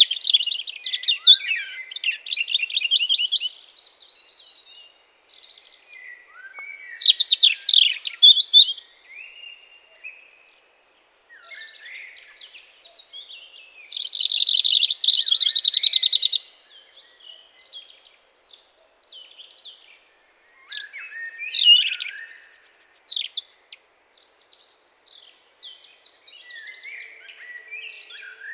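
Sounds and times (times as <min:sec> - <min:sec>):
European robin singing: 0:00.0 - 0:28.5.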